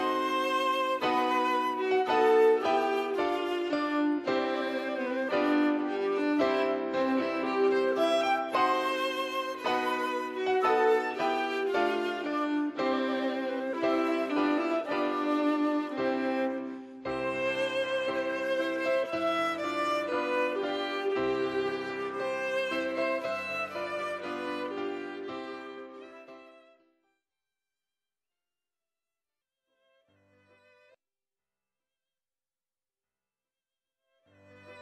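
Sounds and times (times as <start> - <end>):
wedding march music: 0.0 - 26.6.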